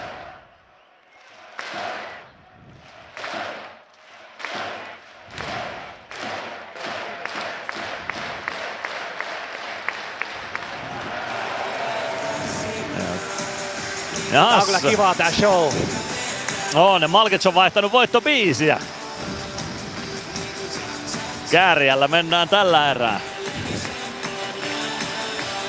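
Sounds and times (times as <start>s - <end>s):
crowd noise: 0.0s - 25.6s
audience clapping in unison: 1.1s - 13.4s, 23.2s - 25.6s
speech: 14.3s - 15.9s, 16.7s - 19.0s, 21.5s - 23.3s.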